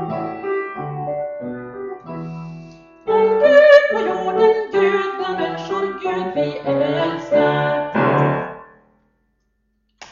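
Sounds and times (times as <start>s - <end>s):
soprano voice: 3.1s - 8.4s.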